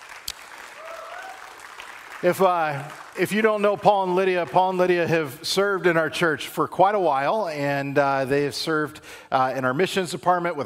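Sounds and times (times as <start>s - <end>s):
church audience applause welcoming guests onto the stage: 0.0s - 5.0s
speech: 2.2s - 10.6s.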